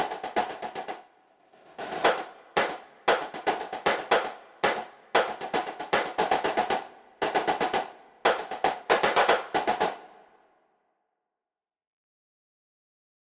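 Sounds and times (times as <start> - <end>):
snare drum cadence: 0.0 - 1.0, 1.8 - 10.1.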